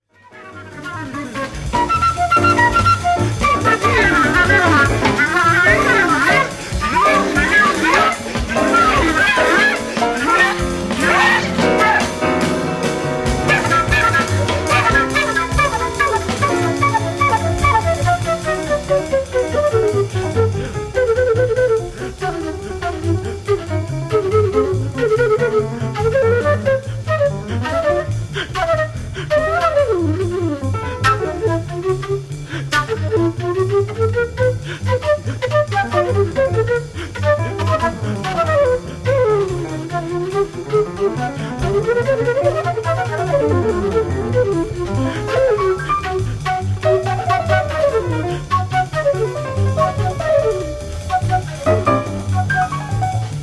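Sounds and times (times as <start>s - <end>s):
flute: 0.0s - 53.4s.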